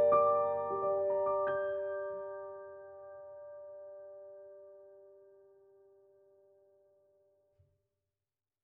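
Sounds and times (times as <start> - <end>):
Pianoteq C3 solo piano notes: 0.0 - 5.5.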